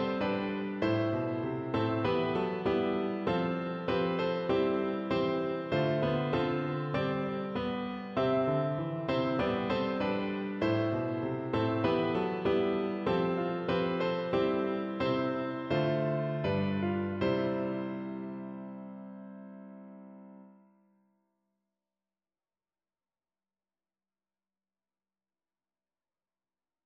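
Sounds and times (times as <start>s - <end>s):
piano: 0.0s - 21.0s.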